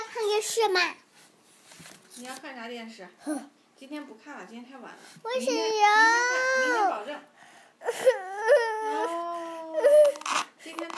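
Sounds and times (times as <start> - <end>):
speech: 0.4 - 1.0, 2.2 - 10.9
young child crying: 5.5 - 7.0, 7.8 - 10.4.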